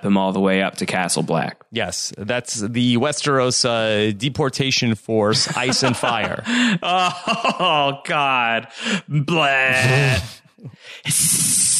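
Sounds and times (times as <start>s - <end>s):
speech: 0.0s - 11.7s
laughter: 5.3s - 8.3s
person hissing at a bad joke: 9.7s - 11.7s.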